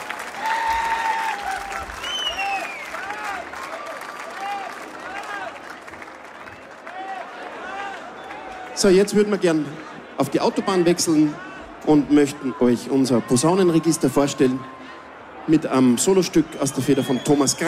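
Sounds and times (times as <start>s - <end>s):
crowd clapping: 0.0s - 9.3s
scattered cheers: 0.0s - 17.6s
sharp whistles: 2.0s - 2.9s, 16.9s - 17.6s
speech: 8.8s - 14.8s, 15.4s - 17.6s.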